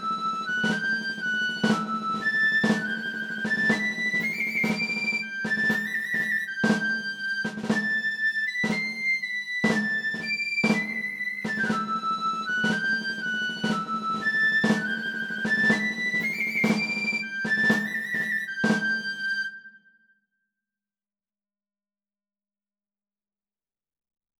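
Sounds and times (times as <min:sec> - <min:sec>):
march music: 0:00.0 - 0:08.0, 0:08.6 - 0:09.0, 0:09.6 - 0:19.3.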